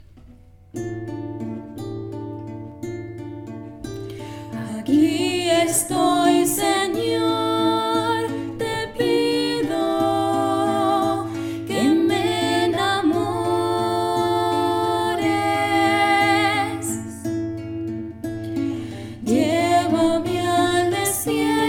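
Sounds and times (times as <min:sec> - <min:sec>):
person singing: 0:04.6 - 0:17.3, 0:18.8 - 0:21.6.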